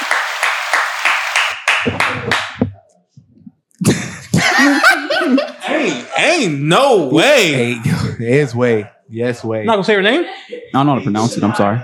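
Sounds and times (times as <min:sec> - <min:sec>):
applause: 0:00.0 - 0:02.6
laughter: 0:03.9 - 0:06.1
speech: 0:06.4 - 0:11.8.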